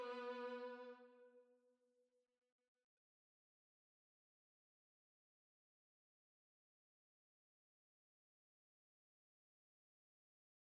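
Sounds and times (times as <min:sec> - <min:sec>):
violin: 0:00.0 - 0:01.4.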